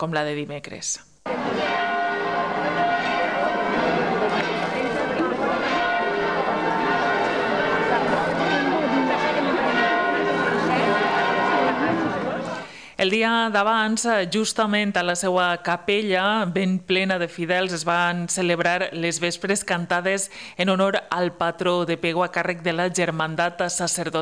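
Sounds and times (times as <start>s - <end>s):
speech: 0.0s - 1.8s, 13.0s - 24.2s
church bells ringing during procession: 1.3s - 12.8s.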